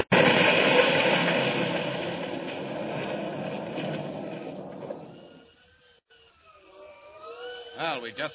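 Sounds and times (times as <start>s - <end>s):
trolley car crashing: 0.0s - 5.8s
speech: 8.0s - 8.3s.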